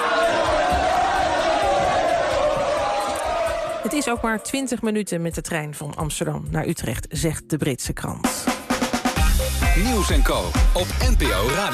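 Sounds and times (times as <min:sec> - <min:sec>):
drunken British fans shouting: 0:00.0 - 0:04.4
rowdy crowd of drunken British fans chanting: 0:00.0 - 0:04.7
speech: 0:04.0 - 0:08.5, 0:09.8 - 0:11.7.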